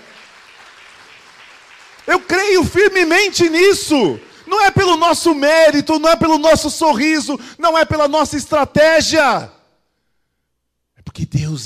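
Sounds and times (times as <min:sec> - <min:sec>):
audience applause: 0:00.0 - 0:04.6
speech: 0:02.0 - 0:09.6, 0:11.2 - 0:11.6.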